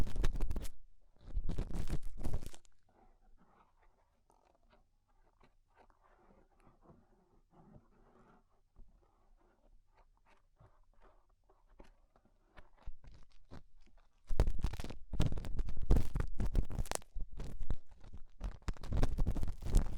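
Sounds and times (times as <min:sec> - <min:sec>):
crackling and scraping from ear cleaning with rhinestone and clay removal: 0:00.0 - 0:02.8, 0:12.6 - 0:19.9.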